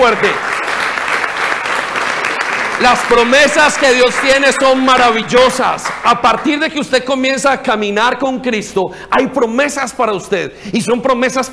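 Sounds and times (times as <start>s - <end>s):
speech: 0.0s - 0.5s, 2.8s - 11.5s
audience applause: 0.0s - 6.4s.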